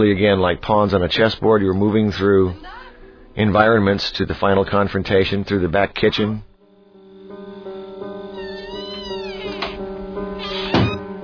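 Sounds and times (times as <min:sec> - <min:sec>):
speech: 0:00.0 - 0:02.8, 0:03.4 - 0:06.5
door squeaking open: 0:08.2 - 0:11.1.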